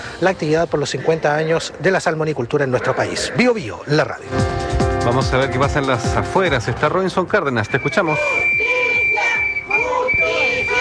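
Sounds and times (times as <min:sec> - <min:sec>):
speech: 0:00.2 - 0:08.7
protesters shouting demands for justice outside the venue: 0:07.9 - 0:10.7.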